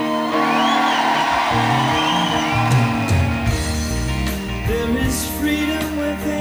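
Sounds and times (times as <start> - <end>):
high rising whoops: 0.0 - 3.9
crowd cheering and shouting: 0.0 - 6.3.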